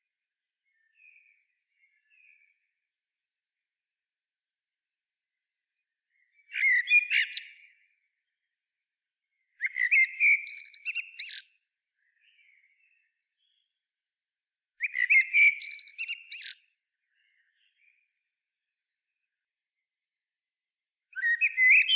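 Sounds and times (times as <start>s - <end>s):
Eurasian blackbird song: 0.0s - 3.0s, 5.7s - 8.5s, 9.3s - 13.9s, 14.8s - 19.4s, 21.1s - 21.9s.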